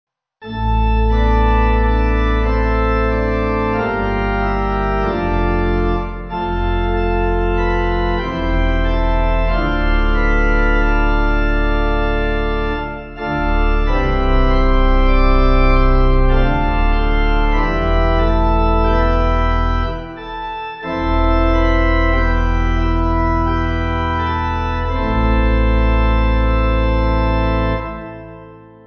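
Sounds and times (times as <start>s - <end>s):
pipe organ church music backing: 0.4s - 28.8s.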